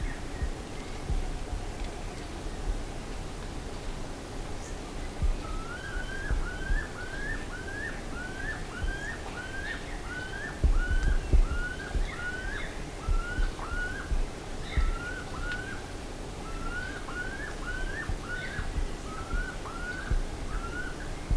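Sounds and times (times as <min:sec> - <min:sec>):
low background rumble: 0:00.0 - 0:21.3
bird whistled calls: 0:05.3 - 0:15.8, 0:16.4 - 0:21.3.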